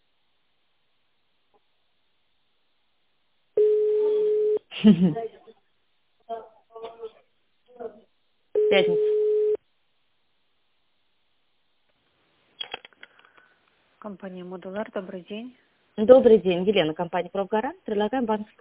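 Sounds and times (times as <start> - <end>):
telephone ringback tone while on hold: 3.6 - 4.6, 8.6 - 9.6
speech: 4.8 - 5.4, 8.7 - 9.1, 14.1 - 18.6.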